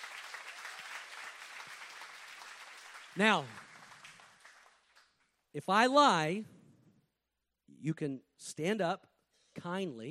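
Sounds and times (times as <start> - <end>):
audience hand clapping: 0.0 - 5.4
speech: 3.2 - 3.6, 5.5 - 6.6, 7.8 - 10.0.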